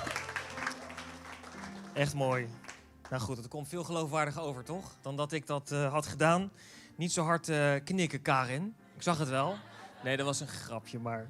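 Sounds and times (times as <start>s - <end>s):
audience applause: 0.0s - 3.4s
speech: 2.0s - 11.2s
laughter: 9.4s - 10.7s.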